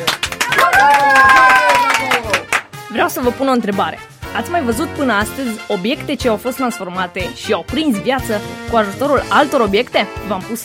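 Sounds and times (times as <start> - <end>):
audience clapping to encourage a contestant: 0.0 - 2.8
speech: 3.1 - 10.6.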